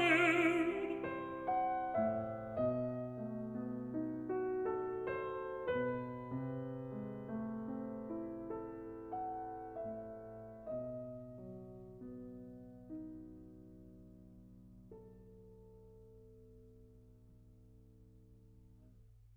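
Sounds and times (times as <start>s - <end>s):
person singing a song cycle: 0.0s - 1.1s
piano: 0.0s - 19.3s.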